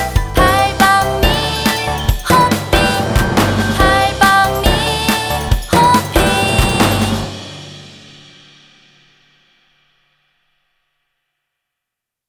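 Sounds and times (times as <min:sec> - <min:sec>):
song in Vietnamese: 0:00.0 - 0:08.6.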